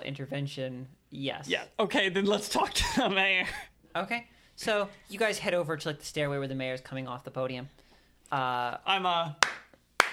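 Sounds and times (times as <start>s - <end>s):
speech: 0.1s - 9.5s
hands clapping: 9.4s - 10.1s.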